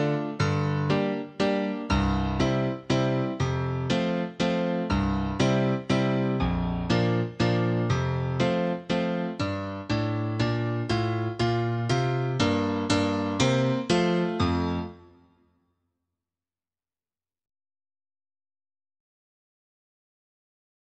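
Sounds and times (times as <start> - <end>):
solo piano piece for a wooden shoe dance: 0.0 - 15.4.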